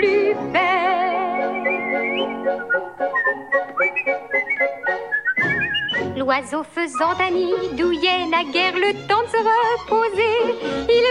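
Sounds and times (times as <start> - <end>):
musical accompaniment: 0.0 - 11.0
whistled song tune: 1.0 - 6.2, 6.8 - 7.6
speech: 6.3 - 11.0.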